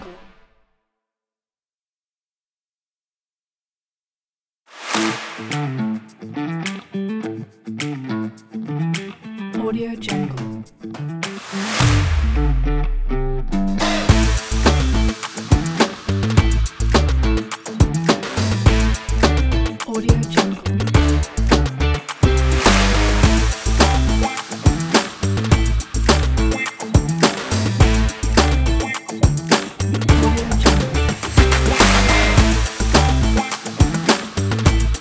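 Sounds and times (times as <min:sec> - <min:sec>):
funk background music: 0:05.0 - 0:09.3, 0:11.8 - 0:35.0.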